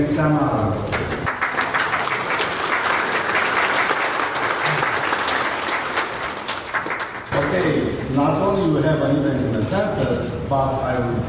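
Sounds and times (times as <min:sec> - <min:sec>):
speech: 0:00.0 - 0:00.9, 0:07.5 - 0:11.2
round of applause: 0:00.9 - 0:08.1.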